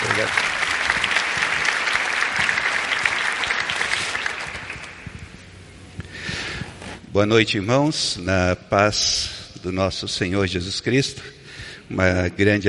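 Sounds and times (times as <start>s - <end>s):
applause: 0.0s - 5.1s
speech: 0.2s - 0.5s, 7.2s - 12.6s.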